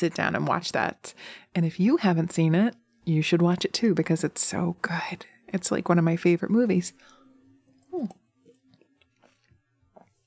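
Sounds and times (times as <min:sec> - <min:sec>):
speech: 0:00.0 - 0:07.2, 0:07.9 - 0:08.2
person drinking water: 0:07.8 - 0:10.2.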